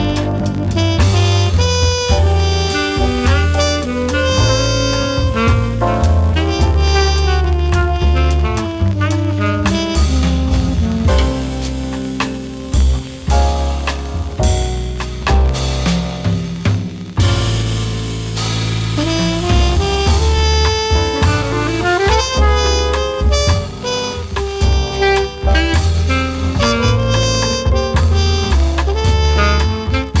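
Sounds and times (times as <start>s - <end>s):
jazz music: 0.0s - 30.1s.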